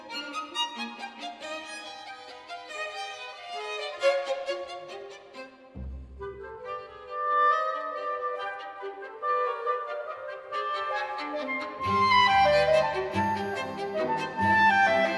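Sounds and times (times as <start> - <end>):
symphony first movement in G major: 6.2 - 15.1.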